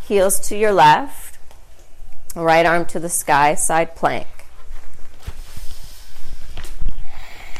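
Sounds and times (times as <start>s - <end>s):
speech: 0.1s - 1.2s, 2.3s - 4.3s
forceful exhales through the nose during a yoga plank: 5.4s - 7.5s.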